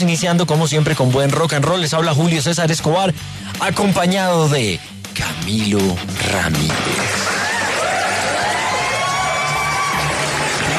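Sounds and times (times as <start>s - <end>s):
speech: 0.0s - 7.2s
crowd applauding and cheering: 6.5s - 10.7s.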